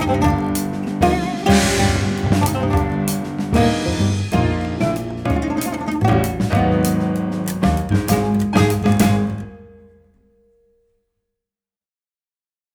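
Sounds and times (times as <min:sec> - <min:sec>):
nu bass music: 0:00.0 - 0:09.6.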